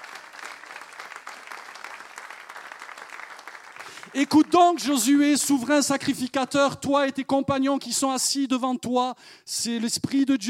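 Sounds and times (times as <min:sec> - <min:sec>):
church congregation applauding during a French-language service: 0:00.0 - 0:05.3
speech: 0:04.1 - 0:10.4.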